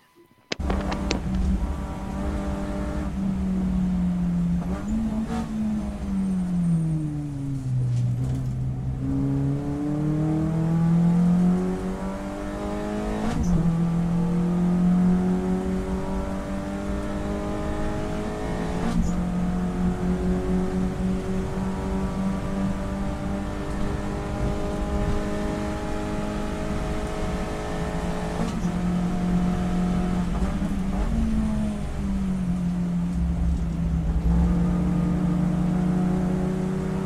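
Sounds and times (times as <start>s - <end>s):
race car engine at Snetterton in the wet: 0.5s - 37.0s.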